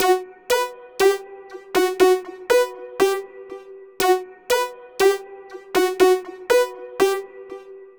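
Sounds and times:
hi-pass pluck synth: 1.8s - 3.2s, 4.0s - 5.2s, 5.8s - 7.2s.

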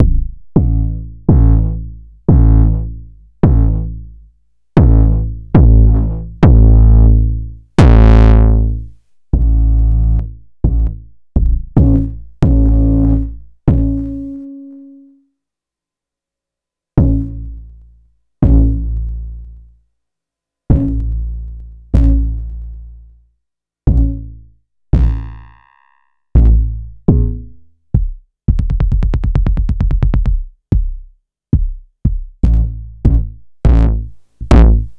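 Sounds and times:
kick drum: 0.0s - 4.0s, 4.8s - 7.1s, 7.8s - 8.8s, 9.4s - 14.1s, 17.0s - 17.4s, 18.4s - 18.8s, 20.7s - 21.1s, 23.9s - 24.4s, 25.0s - 25.3s, 26.4s - 34.9s.

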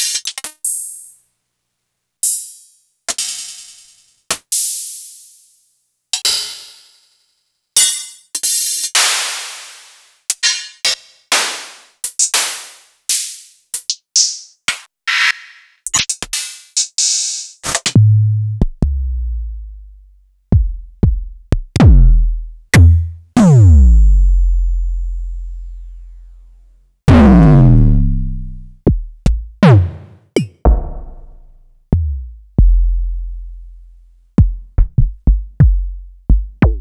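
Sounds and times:
Elektron MachineDrum SPS1 MKII drum machine: 17.6s - 19.4s, 20.5s - 24.7s, 27.1s - 33.8s, 34.4s - 36.8s.

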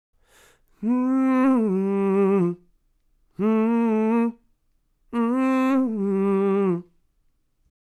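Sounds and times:
soul vocal melodies in G minor at 140 BPM: 0.8s - 2.6s, 3.4s - 4.4s, 5.1s - 7.0s.

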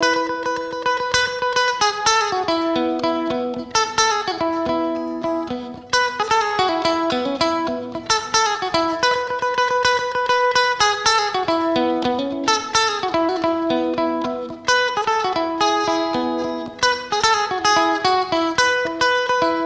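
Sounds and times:
South African township guitar playing: 0.0s - 19.6s.

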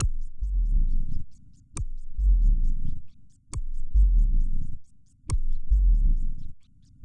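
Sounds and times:
synth bass: 0.0s - 1.2s, 2.1s - 3.0s, 3.8s - 4.7s, 5.5s - 6.5s.

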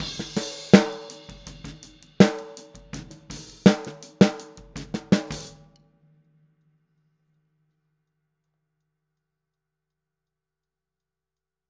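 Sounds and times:
boogaloo outro snare drum: 0.0s - 5.7s.

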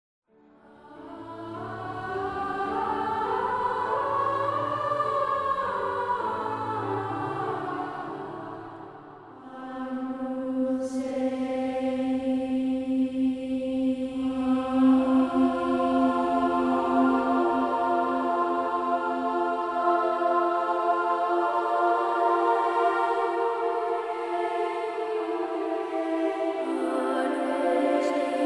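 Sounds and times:
boys choir singing: 0.6s - 28.4s.

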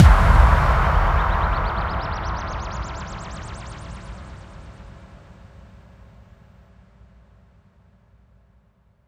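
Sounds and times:
effect kick drum hits: 0.0s - 3.4s.

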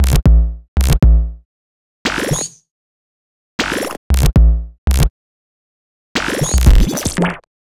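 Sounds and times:
percussive bass: 0.0s - 1.4s, 4.0s - 5.1s, 6.5s - 7.0s.

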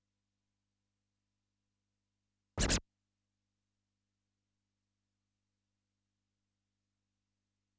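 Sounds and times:
Yamaha DD-65 sound effects: 2.6s - 2.8s.

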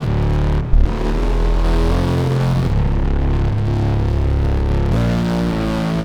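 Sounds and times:
futurist drum and bass music: 0.0s - 6.0s.

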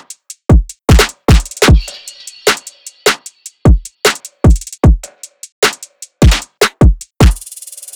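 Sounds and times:
full music loop: 0.5s - 2.0s, 3.7s - 7.9s.

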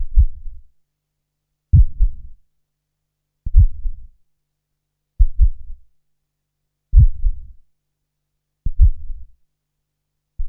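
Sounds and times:
heartbeat: 0.0s - 0.6s, 1.7s - 2.4s, 3.5s - 4.1s, 5.2s - 5.8s, 6.9s - 7.6s, 8.7s - 9.3s.

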